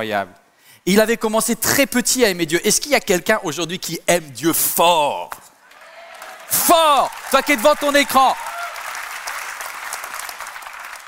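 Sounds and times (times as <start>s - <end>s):
speech: 0.0s - 5.5s, 6.5s - 8.4s
crowd clapping: 5.6s - 11.0s.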